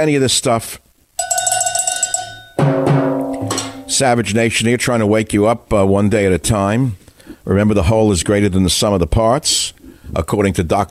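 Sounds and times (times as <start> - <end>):
speech: 0.0 - 1.3, 3.9 - 10.8
cowbell being struck: 1.2 - 4.2.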